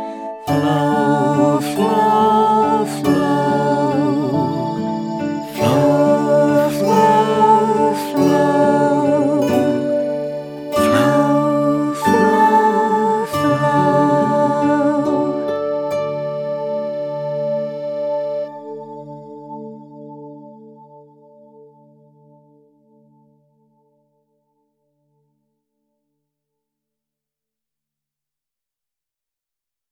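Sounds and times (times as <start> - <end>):
vocals: 0.0 - 17.8.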